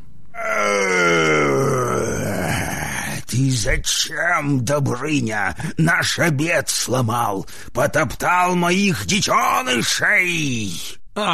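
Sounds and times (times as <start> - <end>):
dragon roaring loudly: 0.4 - 3.0
speech: 3.6 - 11.3.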